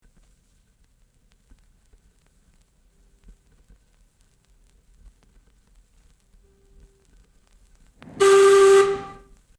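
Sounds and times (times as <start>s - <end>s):
whistle: 8.1s - 9.3s.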